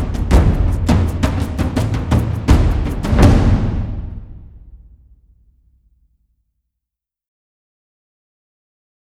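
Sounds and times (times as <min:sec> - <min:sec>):
drums: 0:00.0 - 0:05.2.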